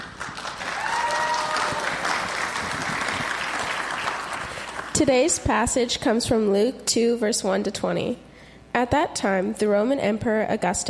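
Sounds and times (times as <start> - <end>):
audience applauding: 0.0 - 5.0
speech: 5.0 - 10.8.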